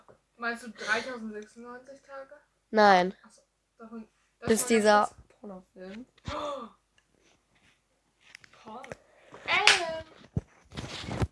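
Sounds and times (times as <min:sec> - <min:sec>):
speech: 0:00.4 - 0:06.8, 0:08.7 - 0:10.1
slapping someone: 0:09.5 - 0:10.0.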